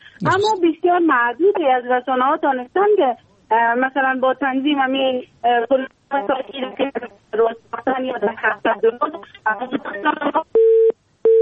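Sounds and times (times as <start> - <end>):
speech: 0.2 - 11.0
telephone busy tone after a phone-in caller's call drops: 10.6 - 11.4.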